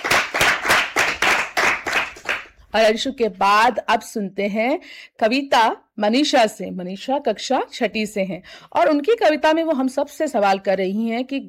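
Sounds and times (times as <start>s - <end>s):
audience clapping: 0.0s - 2.6s
speech: 2.8s - 11.4s.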